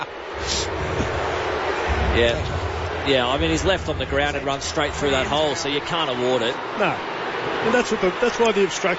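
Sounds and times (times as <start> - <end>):
stadium crowd booing: 0.0 - 8.9
speech: 2.2 - 8.9.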